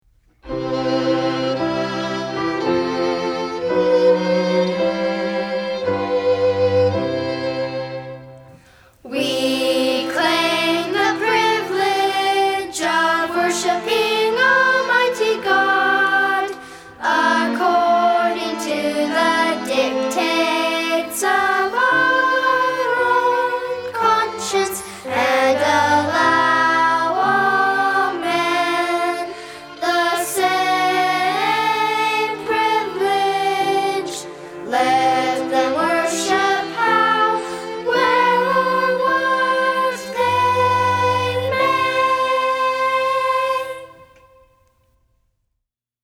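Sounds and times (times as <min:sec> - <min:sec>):
music: 0:00.0 - 0:45.2.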